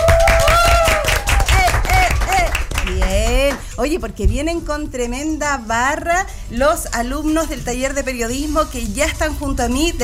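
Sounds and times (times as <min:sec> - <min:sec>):
students applauding: 0:00.0 - 0:03.7
speech: 0:03.8 - 0:10.0.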